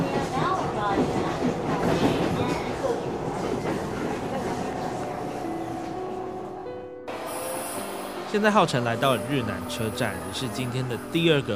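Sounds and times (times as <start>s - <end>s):
rail clatter: 0.0s - 9.1s
train rumbling at Rinan railway station on Taiwan's coastal line: 0.0s - 11.5s
speech: 8.4s - 11.5s.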